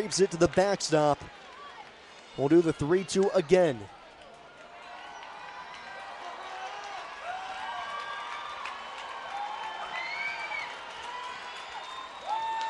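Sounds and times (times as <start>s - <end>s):
speech: 0.0s - 1.4s, 2.4s - 4.0s
stadium crowd cheering: 0.0s - 12.6s.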